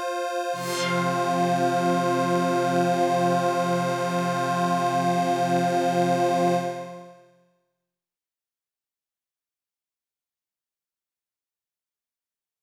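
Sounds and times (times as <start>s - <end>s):
bright pad with superimposed ascending fifths: 0.4s - 6.7s.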